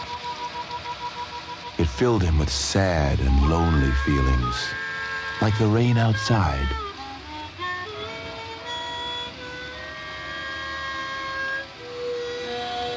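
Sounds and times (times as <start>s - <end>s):
harmonica playing: 0.0s - 12.9s
speech: 1.8s - 4.8s, 5.4s - 6.8s.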